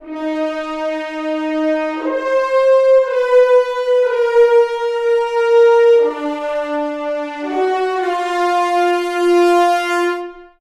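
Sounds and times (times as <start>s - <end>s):
string instrument: 0.0s - 10.5s.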